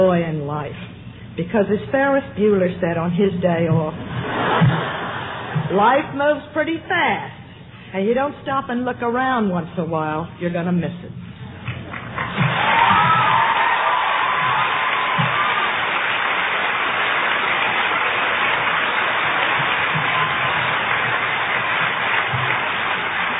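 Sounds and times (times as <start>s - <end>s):
speech: 0.0s - 4.9s, 5.6s - 11.2s
audience clapping and cheering: 11.6s - 23.3s.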